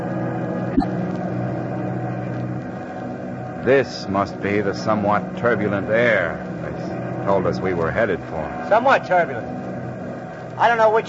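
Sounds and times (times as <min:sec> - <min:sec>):
giant bomber aircraft engines roaring in flight through the night: 0:00.9 - 0:11.0
speech: 0:03.6 - 0:09.7, 0:10.6 - 0:11.0.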